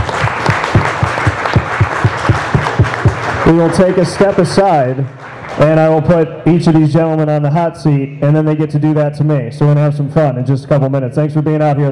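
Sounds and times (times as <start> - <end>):
regular rhythmic beat: 0.0 - 5.2
audience applause: 0.0 - 5.8
speech: 3.5 - 11.9.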